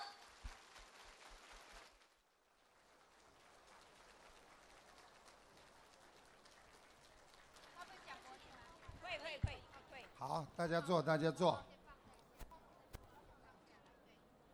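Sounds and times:
audience applause: 0.1s - 2.1s, 2.6s - 9.3s
speech: 10.4s - 11.7s.

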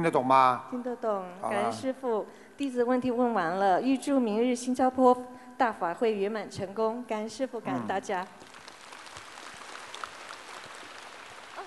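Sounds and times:
speech: 0.0s - 8.5s
audience applause: 8.4s - 11.6s.

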